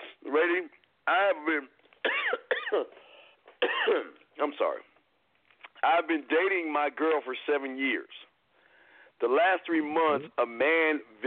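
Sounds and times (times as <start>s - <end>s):
speech: 0.3s - 1.8s, 2.7s - 3.0s, 3.9s - 4.9s, 5.8s - 8.3s, 9.2s - 11.2s
person coughing: 2.0s - 3.0s, 3.6s - 4.2s.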